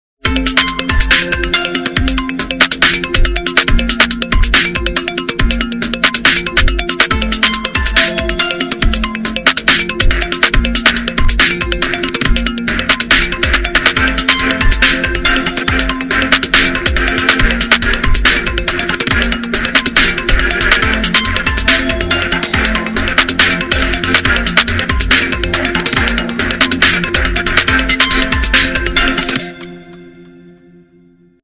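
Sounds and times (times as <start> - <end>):
Oppo A53 official ringtone: 0.3 - 31.0.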